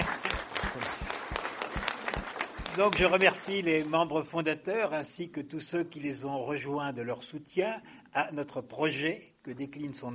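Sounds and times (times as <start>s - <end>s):
audience applause: 0.0s - 4.0s
speech: 2.8s - 10.1s.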